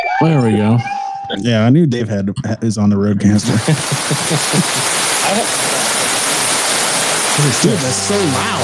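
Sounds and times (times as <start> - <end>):
speech: 0.2 - 5.6, 7.4 - 8.6
laughter: 0.2 - 6.1, 7.4 - 8.6
thunderstorm rain sound effect: 3.3 - 8.6.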